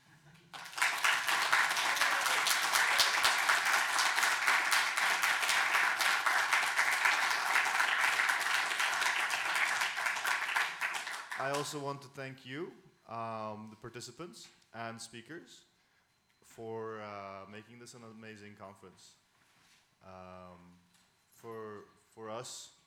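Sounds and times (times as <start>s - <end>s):
audience applause: 0.5s - 11.7s
speech: 11.5s - 15.7s, 16.6s - 19.2s, 20.0s - 20.8s, 21.4s - 22.8s.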